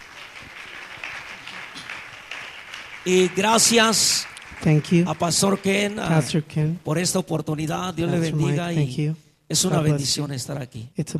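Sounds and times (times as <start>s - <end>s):
audience hand clapping: 0.0s - 6.4s
speech: 3.0s - 11.1s.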